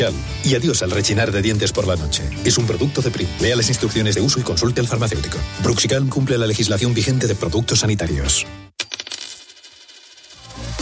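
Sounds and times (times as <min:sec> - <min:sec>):
speech: 0:00.0 - 0:08.7
euro coin dropping and rattling: 0:08.8 - 0:10.7.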